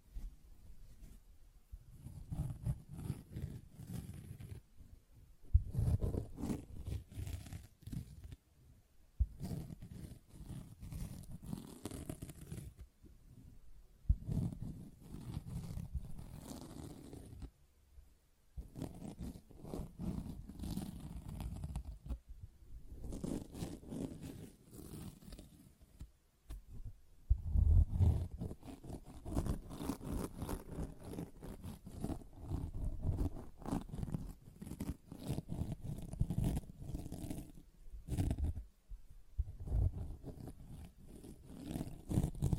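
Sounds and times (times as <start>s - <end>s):
sponge scratched and squished: 1.9s - 4.6s, 5.6s - 8.4s, 9.3s - 12.8s, 14.1s - 17.5s, 18.6s - 22.2s, 22.9s - 26.1s, 27.4s - 38.6s, 39.5s - 42.5s.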